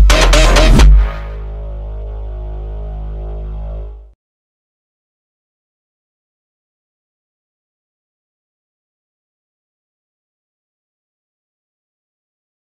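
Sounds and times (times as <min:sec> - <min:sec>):
Brazilian phonk music: 0:00.0 - 0:04.1.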